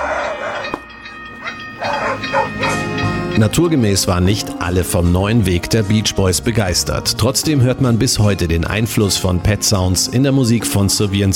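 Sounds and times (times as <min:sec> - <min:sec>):
dogs barking: 0:00.0 - 0:00.8, 0:01.4 - 0:03.1
speech: 0:03.4 - 0:11.3.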